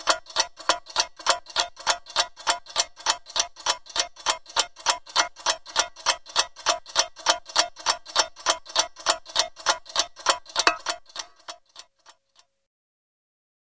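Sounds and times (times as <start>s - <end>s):
clock ticking: 0.0s - 12.5s.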